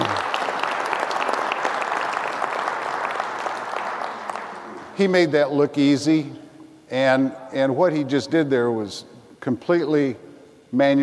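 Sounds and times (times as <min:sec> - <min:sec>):
audience applause: 0:00.0 - 0:05.0
speech: 0:05.0 - 0:11.0.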